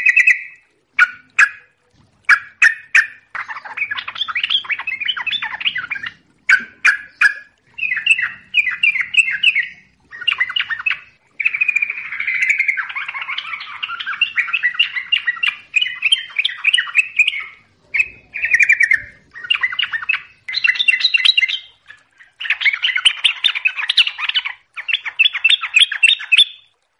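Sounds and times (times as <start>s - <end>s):
yellow-vented bulbul chattering and twittering: 0.0s - 26.7s.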